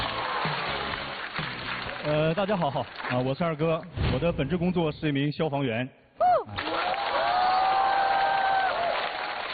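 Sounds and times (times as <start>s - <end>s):
audience applause: 0.0s - 3.3s, 6.5s - 9.5s
speech: 2.0s - 6.0s
sustained high cheer or whistle-like tone: 6.2s - 9.4s.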